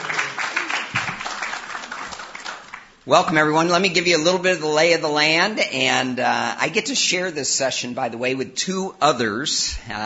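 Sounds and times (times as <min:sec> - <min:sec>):
audience applause welcoming a speaker: 0:00.0 - 0:03.0
speech: 0:03.1 - 0:10.0.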